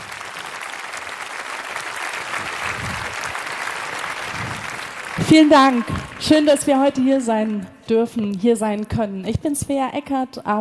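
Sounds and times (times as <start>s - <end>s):
audience applause: 0.0s - 7.8s
speech: 5.2s - 10.5s.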